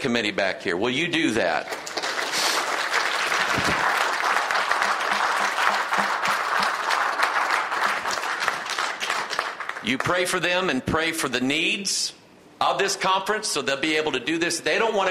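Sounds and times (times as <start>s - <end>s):
speech: 0.0s - 1.8s, 9.8s - 15.0s
audience applause: 1.6s - 9.8s.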